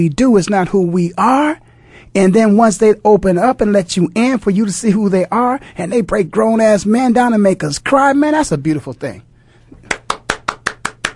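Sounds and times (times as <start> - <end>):
speech: 0.0 - 9.3
single person clapping imitating audience applause: 9.8 - 11.1.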